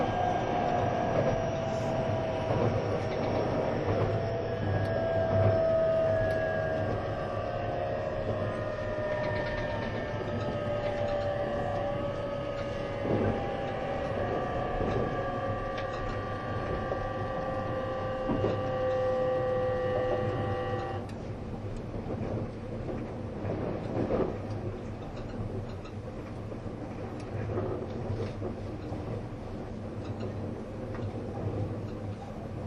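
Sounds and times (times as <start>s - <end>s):
sliding whining tones of moving train: 0.0s - 21.2s
E257 Azusa train running rumble: 0.0s - 32.6s.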